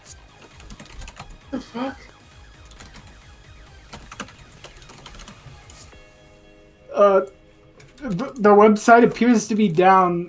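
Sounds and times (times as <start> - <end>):
typing on a computer keyboard: 0.5 - 1.4, 2.6 - 3.1, 3.9 - 5.4
speech: 1.5 - 2.2, 7.0 - 7.4, 8.0 - 10.2.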